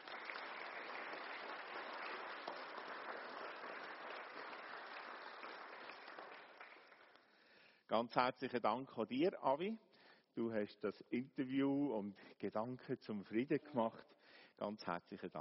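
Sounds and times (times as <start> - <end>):
applause: 0.0 - 7.6
speech: 7.9 - 15.3.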